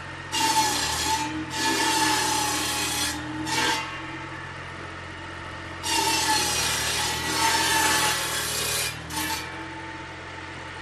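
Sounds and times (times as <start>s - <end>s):
chainsaw cutting wood: 0.4s - 4.3s, 5.8s - 9.9s.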